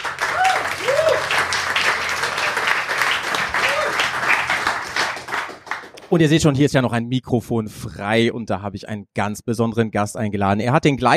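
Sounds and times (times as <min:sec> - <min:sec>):
whoops and cheers: 0:00.0 - 0:01.6, 0:03.3 - 0:04.4
audience applause: 0:00.0 - 0:06.2
speech: 0:06.1 - 0:11.1.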